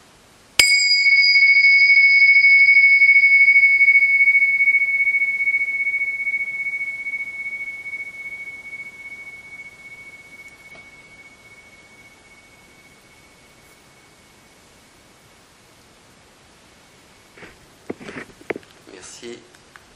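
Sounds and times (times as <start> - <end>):
meditation bell ringing: 0.6 - 15.1.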